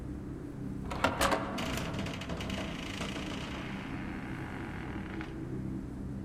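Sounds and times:
steady low rumble: 0:00.0 - 0:06.2
door lock and handle clicking and rattling: 0:00.9 - 0:03.3.

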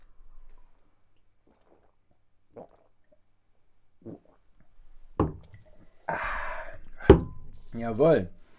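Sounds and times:
chugging strawberry sparkling wine from bottle: 0:01.4 - 0:03.0, 0:04.0 - 0:04.4
breathy burst of fizz or exhaled air: 0:06.1 - 0:07.1
speech: 0:07.8 - 0:08.4.

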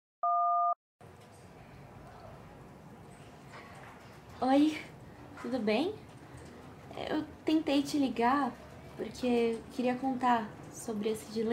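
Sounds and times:
voicemail beep after a recorded message: 0:00.2 - 0:00.8
speech: 0:04.4 - 0:06.0, 0:07.0 - 0:11.5.

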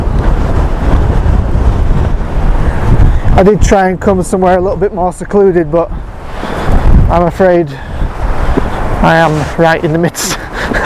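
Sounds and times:
heavy wind buffeting the microphone beside Greenfield Reservoir: 0:00.0 - 0:10.8
speech: 0:03.4 - 0:06.2, 0:07.1 - 0:07.9, 0:09.0 - 0:10.8.

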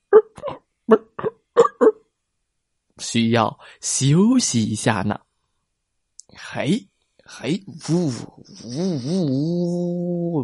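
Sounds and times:
voice imitating an old car engine hiccuping: 0:00.0 - 0:02.0
speech: 0:03.1 - 0:05.2, 0:06.6 - 0:10.4.

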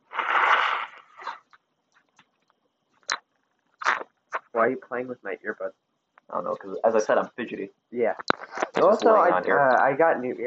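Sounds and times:
nose blowing: 0:00.0 - 0:01.4
speech: 0:04.6 - 0:10.4.

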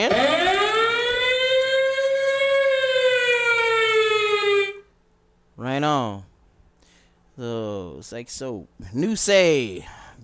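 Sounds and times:
alarm siren: 0:00.0 - 0:05.0
speech: 0:08.1 - 0:10.2.

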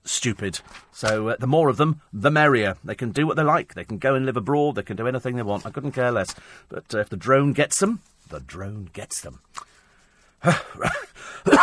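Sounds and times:
speech: 0:00.2 - 0:09.7, 0:10.4 - 0:11.6
chesty cough: 0:10.4 - 0:11.6.

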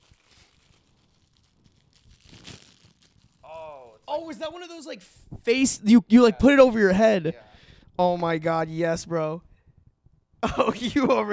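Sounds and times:
packaging crinkling and tearing as bandanas are unwrapped: 0:00.0 - 0:03.9
speech: 0:04.2 - 0:09.5, 0:10.4 - 0:11.3.

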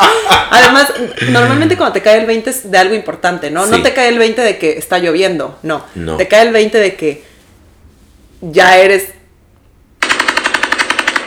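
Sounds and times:
laughter: 0:00.0 - 0:02.0, 0:03.6 - 0:03.9
speech: 0:00.6 - 0:07.3, 0:08.4 - 0:09.2
AK-47 assault rifle automatic fire: 0:10.0 - 0:11.2.

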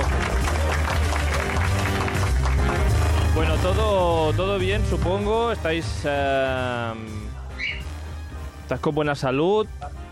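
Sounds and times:
applause: 0:00.0 - 0:03.9
speech: 0:03.6 - 0:07.4, 0:08.7 - 0:10.0.

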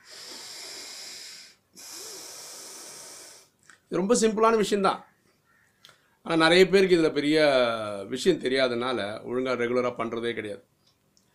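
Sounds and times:
deep pranayama breathing through the nose: 0:00.0 - 0:03.6
speech: 0:03.9 - 0:05.1, 0:06.3 - 0:10.7.

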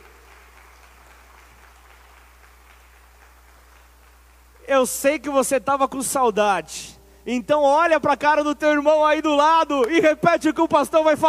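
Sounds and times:
audience applause: 0:00.0 - 0:04.4
speech: 0:04.7 - 0:11.2.

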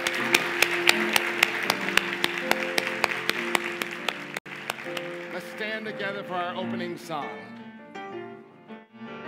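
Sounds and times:
audience clapping in a steady brisk rhythm: 0:00.0 - 0:06.5
speech: 0:05.8 - 0:07.6.

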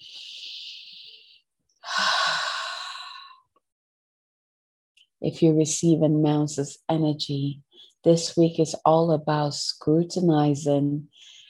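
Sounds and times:
deep breath in during a guided breathing pause: 0:00.0 - 0:03.4
speech: 0:05.2 - 0:11.4.

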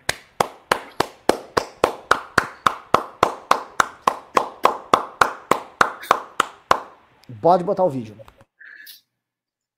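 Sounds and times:
hand clapping: 0:00.0 - 0:07.0
speech: 0:07.4 - 0:08.3.

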